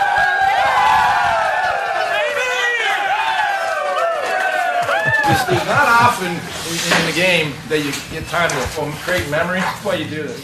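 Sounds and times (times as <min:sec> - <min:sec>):
Carolina Hurricanes hockey players cheering in their locker room: 0:00.0 - 0:06.6
laughter: 0:04.3 - 0:07.2
speech: 0:05.4 - 0:10.4.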